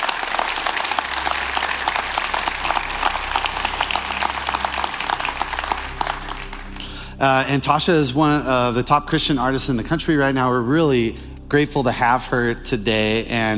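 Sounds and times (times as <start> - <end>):
audience applause welcoming a worship singer at a worship service: 0.0 - 7.2
speech: 7.2 - 13.5.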